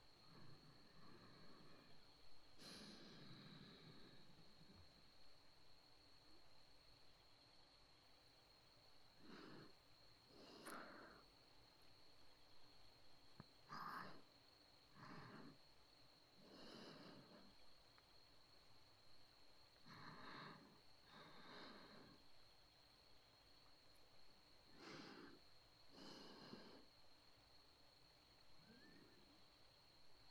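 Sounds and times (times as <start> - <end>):
breathing in the right ear: 0.1 - 5.4, 9.2 - 11.4, 13.5 - 15.7, 16.3 - 17.8, 19.8 - 22.5, 24.6 - 27.1, 28.3 - 29.5.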